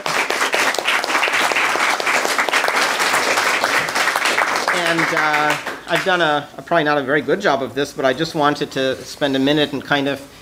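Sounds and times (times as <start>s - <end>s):
round of applause for panelists: 0.0s - 6.2s
speech: 5.1s - 10.3s.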